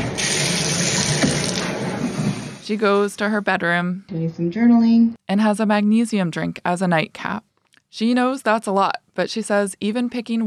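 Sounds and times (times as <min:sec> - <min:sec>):
hot shower with eucalyptus leaves spraying water: 0:00.0 - 0:02.6
speech: 0:02.7 - 0:10.4.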